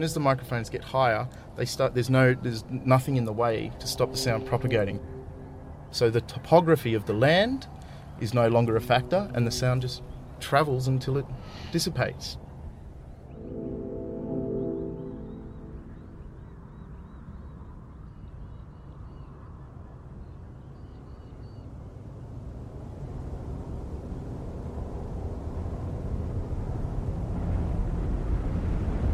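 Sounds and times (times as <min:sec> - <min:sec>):
speech: 0:00.0 - 0:05.2, 0:05.9 - 0:12.4
distant traffic: 0:00.0 - 0:20.5
wind: 0:00.0 - 0:29.1.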